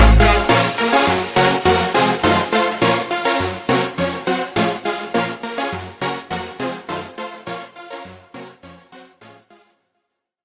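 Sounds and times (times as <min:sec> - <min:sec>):
super slowed music with reverb: 0:00.0 - 0:09.4.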